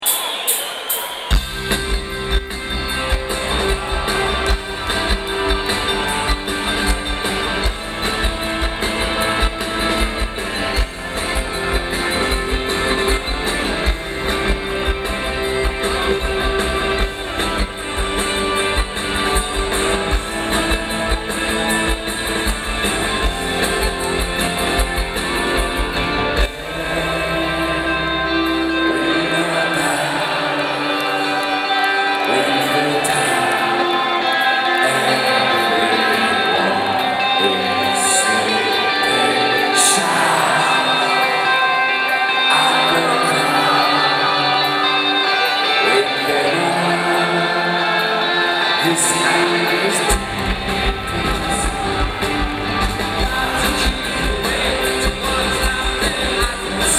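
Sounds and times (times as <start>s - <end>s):
bells ringing: 0.0s - 56.9s.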